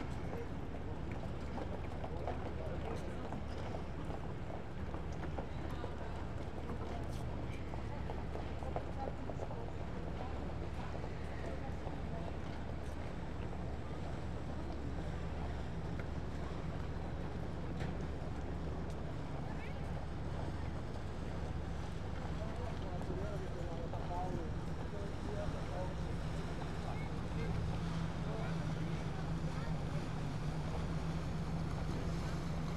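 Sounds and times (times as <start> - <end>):
busy canal in Italy: 0.0 - 32.7.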